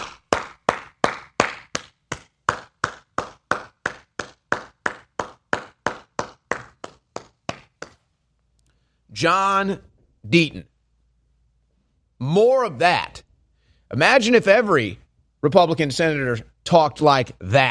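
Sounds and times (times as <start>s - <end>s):
slow steady clapping: 0.0s - 8.2s
speech: 9.2s - 10.7s, 12.2s - 13.2s, 13.9s - 17.6s.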